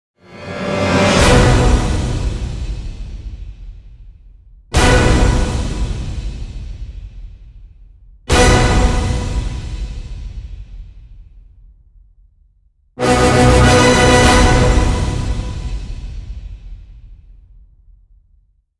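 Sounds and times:
orchestral end hits: 0.2 - 3.4, 4.8 - 6.8, 8.3 - 10.4, 13.0 - 16.7.

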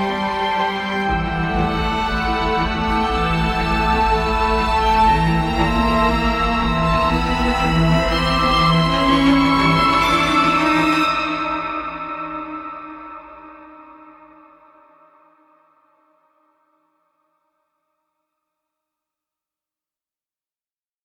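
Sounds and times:
intense ambience: 0.0 - 11.3.

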